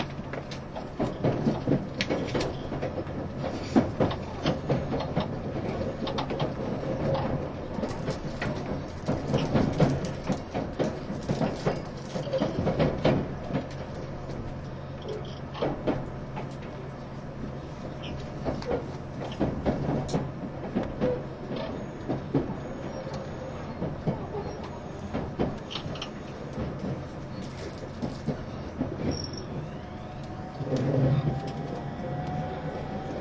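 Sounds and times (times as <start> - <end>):
JR East E351 series tilting train motor hum: 0.0 - 33.1
rail clicks and rattling thumps: 0.0 - 33.1
rising whine: 29.3 - 33.1.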